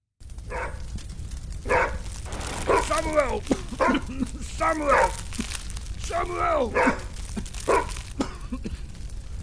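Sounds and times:
dog barking: 0.5s - 0.9s, 1.6s - 3.0s, 3.7s - 4.1s, 4.8s - 5.2s, 6.7s - 8.1s
low rumble: 1.1s - 9.4s
speech: 3.0s - 5.2s, 6.1s - 7.0s.

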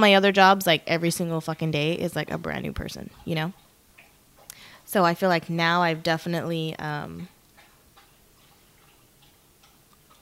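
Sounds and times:
speech: 0.0s - 3.6s, 4.9s - 7.3s
low hiss: 0.0s - 10.1s
dog lapping drinking water: 7.5s - 10.1s.

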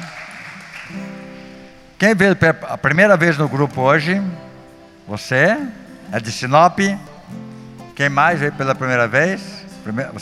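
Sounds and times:
audience applauding: 0.0s - 1.6s
speech: 0.9s - 1.1s, 2.0s - 4.5s, 5.1s - 7.4s, 8.0s - 10.2s.

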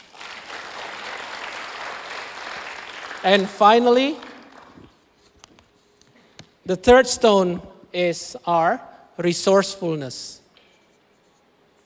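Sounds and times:
audience clapping: 0.0s - 4.9s
speech: 3.2s - 4.2s, 6.7s - 10.4s.

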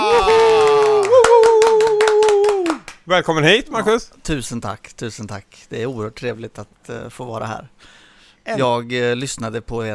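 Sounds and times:
sharp hand claps: 0.3s - 3.1s
speech: 3.1s - 9.9s.

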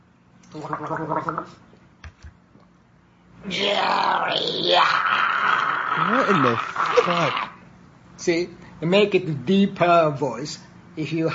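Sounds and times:
guttural gargling from a throat with water: 0.5s - 1.5s, 3.5s - 7.6s
speech: 0.5s - 1.7s, 3.4s - 5.2s, 6.0s - 7.5s, 8.2s - 11.3s.

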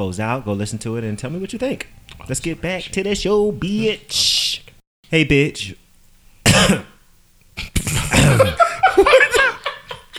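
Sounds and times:
speech: 0.0s - 4.3s, 5.1s - 5.8s, 6.6s - 6.9s, 8.3s - 8.6s
cough: 6.4s - 7.0s, 7.6s - 8.6s
laughter: 7.6s - 10.1s.

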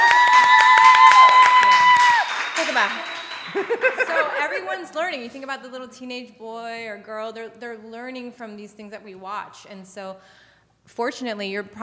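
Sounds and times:
crowd clapping and cheering: 0.0s - 4.9s
speech: 2.8s - 11.8s
steady high whistle-like tone: 2.9s - 3.8s
laughter: 3.4s - 5.0s.

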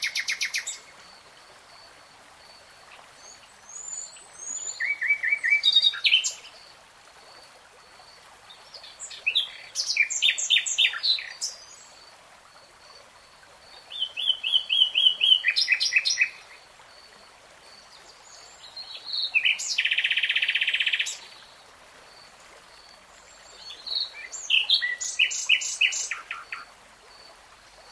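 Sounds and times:
Nightingale song: 0.0s - 0.9s, 2.9s - 6.6s, 8.6s - 12.0s, 13.7s - 16.6s, 17.8s - 21.6s, 23.2s - 26.7s
faint hiss: 0.0s - 27.9s.

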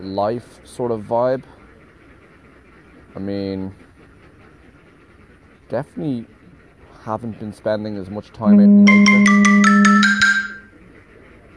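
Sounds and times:
speech: 0.0s - 1.6s, 3.2s - 3.9s, 5.7s - 6.4s, 7.0s - 9.3s
alarm going off: 8.5s - 10.7s.

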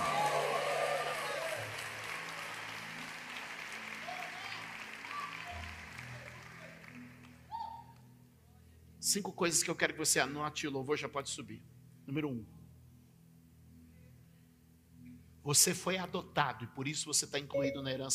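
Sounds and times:
audience applause: 0.0s - 7.4s
speech: 9.0s - 12.6s, 15.5s - 18.1s.

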